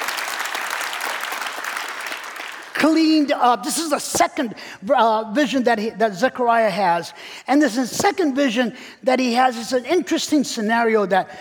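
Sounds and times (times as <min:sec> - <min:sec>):
audience clapping: 0:00.0 - 0:03.3
speech: 0:02.8 - 0:11.4.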